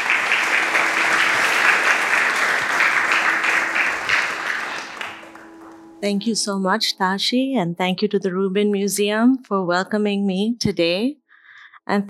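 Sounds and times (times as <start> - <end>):
audience applause at the Rubin Museum welcoming a meditation teacher: 0.0 - 6.0
speech: 6.0 - 11.2, 11.9 - 12.0.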